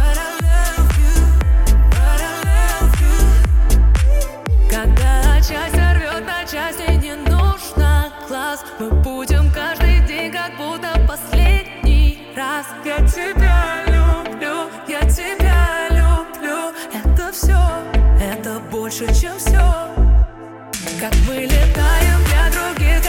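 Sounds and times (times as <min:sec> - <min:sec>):
bass: 0:00.0 - 0:06.2, 0:06.8 - 0:08.1, 0:08.9 - 0:10.1, 0:10.9 - 0:12.2, 0:13.0 - 0:14.3, 0:15.0 - 0:16.2, 0:17.0 - 0:18.3, 0:19.0 - 0:23.0.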